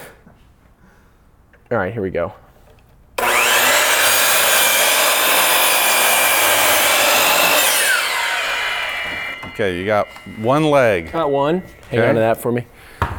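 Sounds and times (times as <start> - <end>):
speech: 1.7 - 2.4, 9.6 - 12.8
saw cutting wood along pencil line: 3.2 - 12.6.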